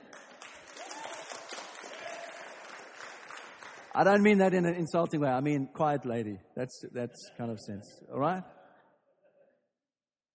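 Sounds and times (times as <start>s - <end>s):
crowd applause: 0.0s - 4.3s
speech: 4.0s - 8.6s.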